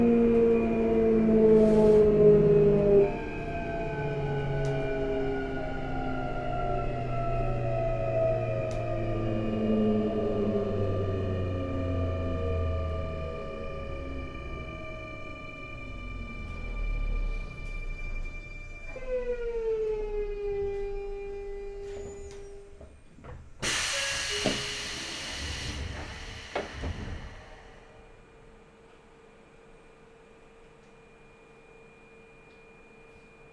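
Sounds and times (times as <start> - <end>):
Sotetsu 9000R train: 0.0 - 33.5.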